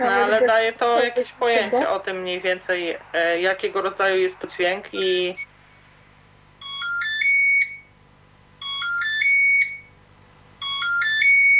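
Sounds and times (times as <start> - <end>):
speech: 0.0 - 5.5
phone ringtone melody of electronic tones: 6.6 - 7.8, 8.6 - 9.8, 10.6 - 11.5.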